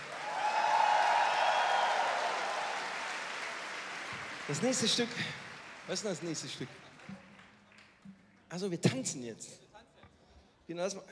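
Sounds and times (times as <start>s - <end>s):
applause: 0.0s - 8.0s
speech: 4.5s - 7.2s, 8.5s - 9.6s, 10.7s - 11.1s.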